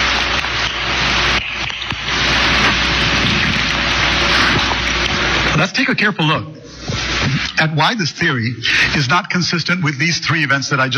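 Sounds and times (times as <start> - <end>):
water being poured for drinking: 0.1 - 5.6
speech: 5.7 - 6.6, 7.2 - 10.9.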